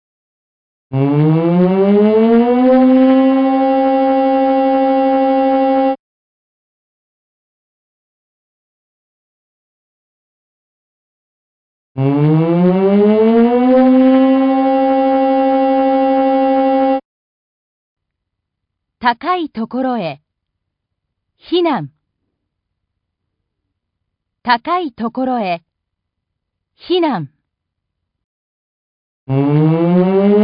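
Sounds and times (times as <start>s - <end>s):
tsunami warning siren wailing: 0.9s - 6.0s, 12.0s - 17.0s, 29.3s - 30.4s
speech: 19.0s - 20.2s, 21.4s - 22.0s, 24.4s - 25.7s, 26.8s - 27.4s, 29.3s - 30.4s.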